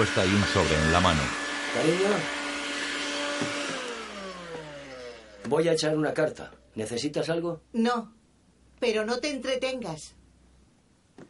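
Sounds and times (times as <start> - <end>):
speech: 0.0 - 2.4, 3.4 - 3.6, 5.5 - 8.2, 8.8 - 10.2
vacuum cleaner droning as a woman cleans a kitchen: 0.0 - 6.0.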